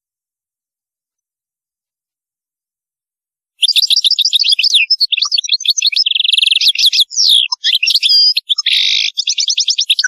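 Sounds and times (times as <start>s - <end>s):
European goldfinch singing: 3.6s - 10.0s.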